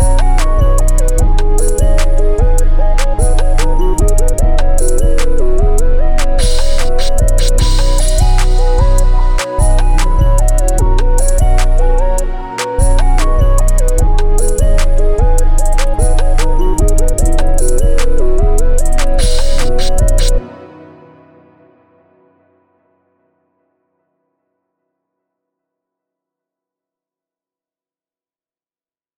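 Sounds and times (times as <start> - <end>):
plugg beat loop: 0.0 - 20.4.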